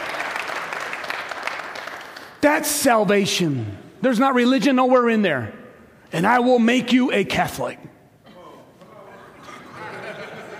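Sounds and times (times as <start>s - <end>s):
audience applauding: 0.0s - 2.4s
speech: 2.4s - 8.0s
laughter: 8.4s - 10.5s.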